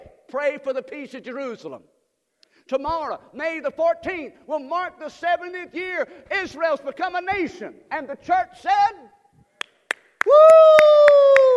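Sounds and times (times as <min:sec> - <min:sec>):
speech: 0:00.3 - 0:02.0, 0:02.7 - 0:09.1, 0:10.2 - 0:10.9
one person clapping during a church sermon: 0:09.6 - 0:11.5
person whooping: 0:10.2 - 0:11.5.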